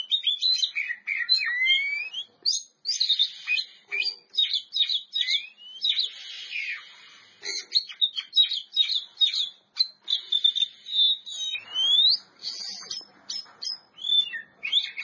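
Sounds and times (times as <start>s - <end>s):
Oriental magpie-robin song of chirps, trills and whistles: 0.0s - 15.0s.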